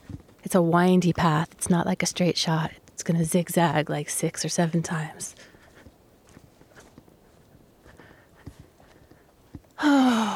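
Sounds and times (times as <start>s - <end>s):
footsteps on a dirt path: 0.0s - 1.7s, 5.2s - 9.8s
low hiss: 0.0s - 10.3s
speech: 0.5s - 5.4s.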